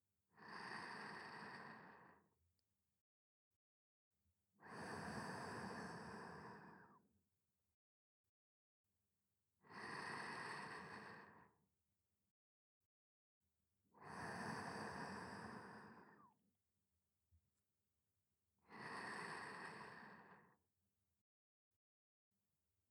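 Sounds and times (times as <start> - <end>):
sleeping breath: 0.4 - 2.2, 4.7 - 7.0, 9.8 - 11.4, 14.1 - 16.3, 18.8 - 20.5.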